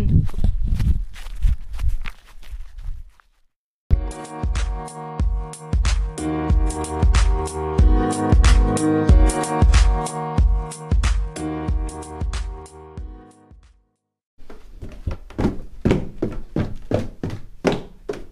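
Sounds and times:
footsteps crunching at a walking pace, walking back to the kitchen: 0:00.2 - 0:03.5, 0:14.4 - 0:18.3
loud music with a strong rhythmic beat: 0:03.9 - 0:13.8.

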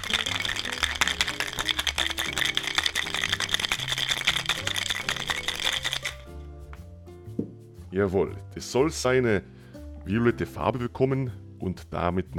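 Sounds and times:
cocktail shaker shaken hard with ice rattling: 0:00.0 - 0:06.3
soft music: 0:00.0 - 0:12.3
speech: 0:08.0 - 0:12.3.

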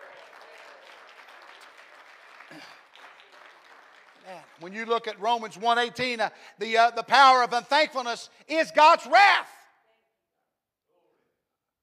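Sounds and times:
audience clapping hands: 0:00.0 - 0:06.2
speech: 0:02.5 - 0:02.8, 0:04.2 - 0:09.5.

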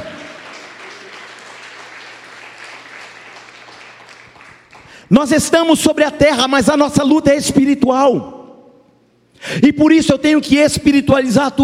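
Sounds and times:
people applauding: 0:00.0 - 0:05.1
speech: 0:05.1 - 0:08.4, 0:09.5 - 0:11.6.

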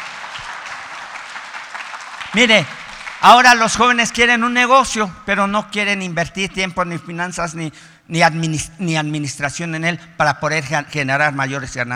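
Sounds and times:
audience applause: 0:00.0 - 0:03.6
speech: 0:02.3 - 0:11.9.

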